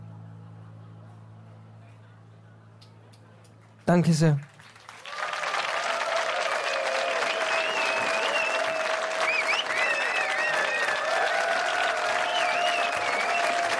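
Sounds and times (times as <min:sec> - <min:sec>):
speech: 0:03.9 - 0:04.5
audience applause: 0:03.9 - 0:13.7.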